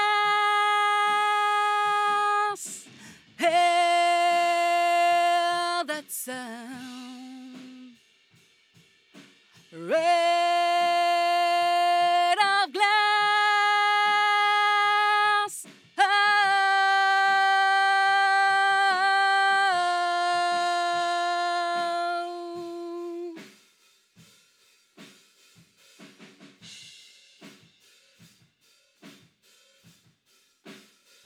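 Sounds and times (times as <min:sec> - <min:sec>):
vocals: 0:00.0 - 0:08.0, 0:09.6 - 0:23.4.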